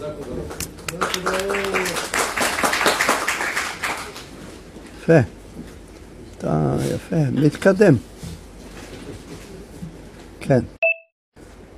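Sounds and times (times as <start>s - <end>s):
audience hand clapping: 0.0s - 4.4s
speech: 5.1s - 5.4s, 6.4s - 8.1s, 10.5s - 10.8s.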